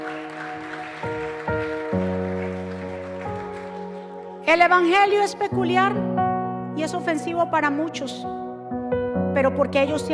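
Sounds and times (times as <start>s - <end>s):
audience applauding loudly: 0.0s - 4.5s
speech: 4.5s - 6.1s, 6.8s - 8.4s, 9.4s - 10.1s.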